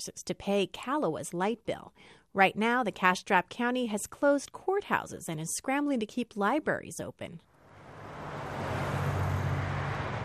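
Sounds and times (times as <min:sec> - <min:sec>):
speech: 0:00.0 - 0:07.5
fleet of PG&E service trucks rumbling past: 0:07.5 - 0:10.2.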